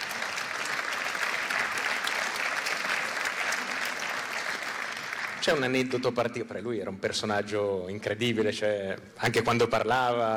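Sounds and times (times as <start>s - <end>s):
audience applause: 0.0s - 5.7s
speech: 5.4s - 10.3s.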